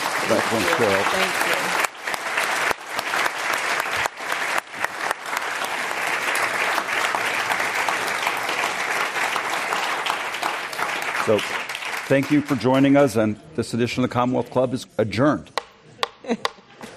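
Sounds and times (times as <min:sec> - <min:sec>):
audience applause: 0:00.0 - 0:13.0
speech: 0:00.3 - 0:01.8, 0:11.3 - 0:15.5, 0:16.3 - 0:16.5.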